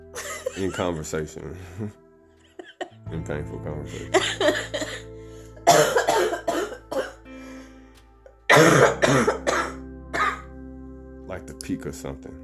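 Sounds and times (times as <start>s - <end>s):
speech: 0.6s - 2.0s, 3.1s - 5.0s, 11.7s - 12.4s
person in a painful coughing fit: 4.2s - 5.0s, 5.6s - 7.2s, 8.5s - 10.4s.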